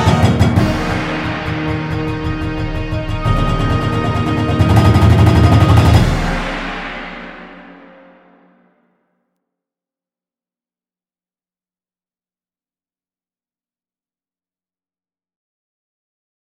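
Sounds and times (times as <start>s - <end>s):
marching band: 0.0s - 8.1s.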